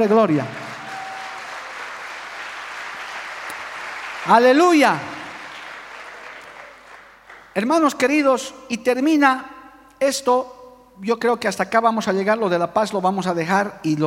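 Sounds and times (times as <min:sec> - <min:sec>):
speech: 0:00.0 - 0:00.6, 0:04.2 - 0:05.2, 0:07.6 - 0:14.0
audience applause: 0:00.0 - 0:07.6.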